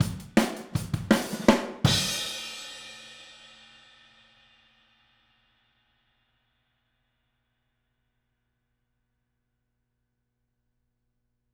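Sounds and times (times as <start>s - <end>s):
drums at 162 BPM: 0.0s - 4.9s.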